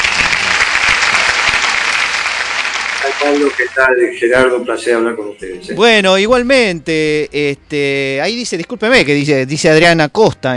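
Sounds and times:
audience applause: 0:00.0 - 0:04.0
speech: 0:03.2 - 0:10.5.

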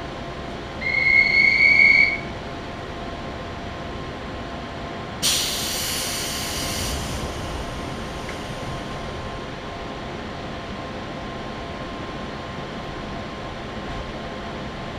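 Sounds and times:
local train on the Chuo West Line rumbling: 0:00.0 - 0:14.9
sharp high squeal: 0:00.8 - 0:02.3
burst of hissing air: 0:05.2 - 0:09.0.

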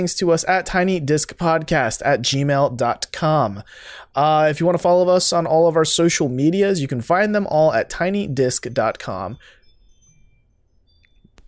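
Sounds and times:
speech: 0:00.0 - 0:09.6
Ring smart doorbell chime triggered by motion: 0:08.4 - 0:11.4.

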